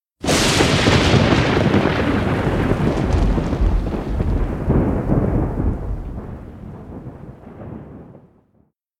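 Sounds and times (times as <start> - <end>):
thunder: 0.2 - 8.7.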